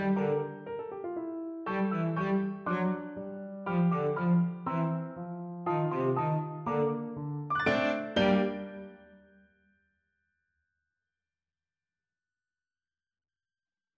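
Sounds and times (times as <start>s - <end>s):
cello: 0.0s - 9.0s.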